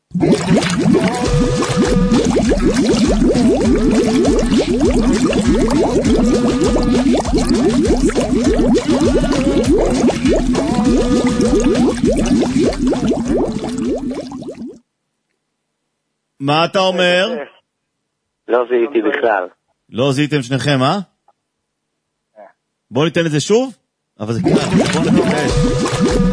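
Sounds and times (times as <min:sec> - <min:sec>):
rain and water noise: 0:00.0 - 0:14.8
song: 0:00.7 - 0:13.8
speech: 0:16.6 - 0:17.5, 0:18.5 - 0:21.1, 0:22.9 - 0:26.0.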